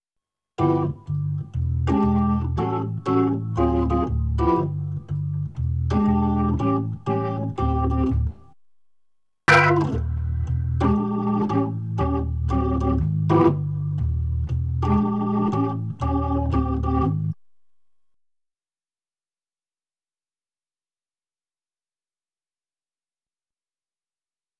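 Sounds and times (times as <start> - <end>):
Hammond B3 organ: 0.6 - 8.4, 9.5 - 17.4.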